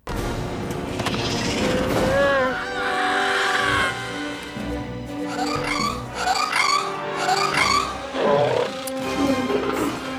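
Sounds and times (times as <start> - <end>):
music: 0.0 - 10.1
alien creature screeching: 1.7 - 4.4, 5.3 - 8.8.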